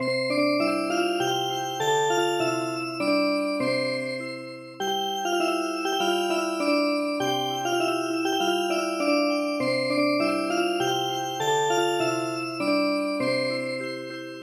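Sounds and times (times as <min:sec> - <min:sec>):
music box: 0:00.0 - 0:14.3.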